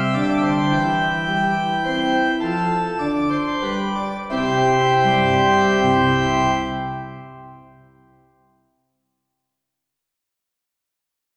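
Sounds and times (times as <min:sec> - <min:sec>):
organ minuet in C major: 0:00.0 - 0:08.2.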